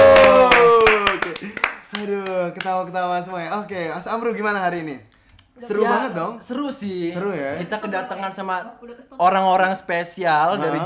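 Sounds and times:
hand claps: 0.0s - 2.8s
speech: 2.6s - 10.8s.

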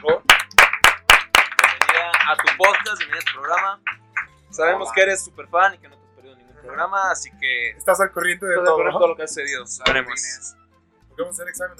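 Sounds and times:
applause for a guest: 0.2s - 4.3s
speech: 2.3s - 6.0s, 6.6s - 10.6s, 11.2s - 11.7s.

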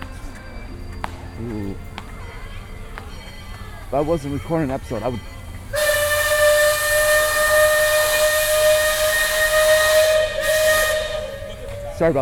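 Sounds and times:
speech: 1.4s - 2.0s, 3.9s - 5.3s, 12.0s - 12.2s
riverboat steam whistle blast: 5.7s - 12.0s.

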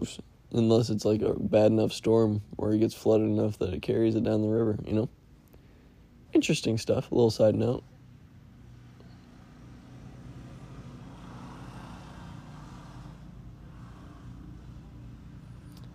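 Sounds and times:
speech: 0.0s - 5.2s, 6.4s - 7.9s
motorcycles passing by: 8.0s - 15.9s.

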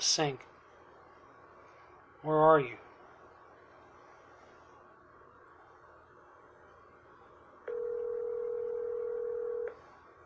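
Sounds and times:
speech: 0.0s - 0.5s, 2.2s - 2.8s
faint hiss: 0.0s - 7.6s
ringback tone on an outgoing phone call: 7.7s - 9.8s.

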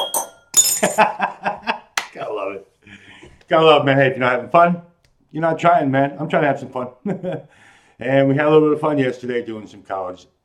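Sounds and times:
bell ringing for happy hour: 0.0s - 1.0s
speech: 0.8s - 1.3s, 3.5s - 10.4s
laughter: 0.8s - 2.4s.

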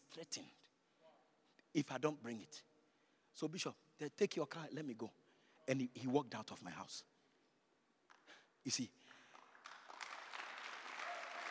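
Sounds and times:
speech: 0.2s - 0.6s, 1.7s - 2.7s, 3.4s - 7.1s, 8.3s - 9.2s
crowd clapping: 9.0s - 11.5s.

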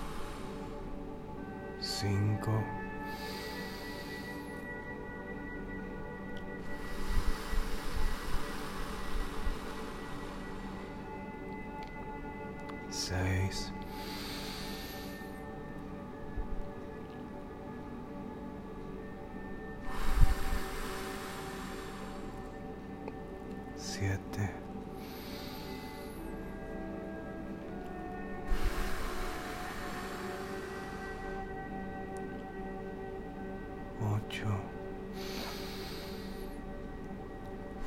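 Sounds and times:
slow airy exhalations: 0.0s - 1.5s, 2.6s - 12.0s, 13.7s - 16.0s, 19.8s - 23.2s, 24.2s - 32.8s, 34.7s - 37.8s
soft sustained tones: 0.0s - 37.8s
speech: 2.0s - 3.4s.

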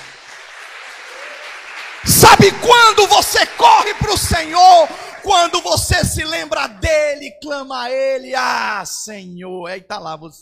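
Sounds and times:
audience applause: 0.0s - 6.1s
speech: 2.0s - 10.3s.

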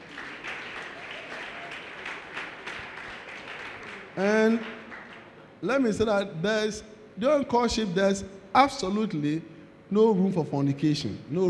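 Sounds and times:
crowd clapping: 0.0s - 5.6s
speech: 4.2s - 4.8s, 5.6s - 11.4s.

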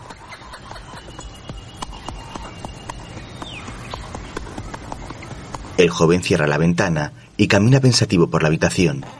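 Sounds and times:
horse galloping away: 0.0s - 6.6s
speech: 5.8s - 9.1s.

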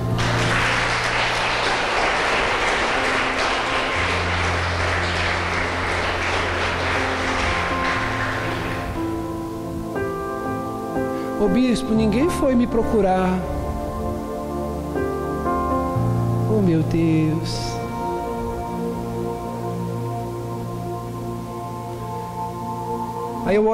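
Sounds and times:
crowd clapping: 0.0s - 9.3s
sustained keyboard chords: 0.0s - 23.7s
speech: 11.5s - 13.5s, 16.7s - 17.7s, 23.5s - 23.7s.

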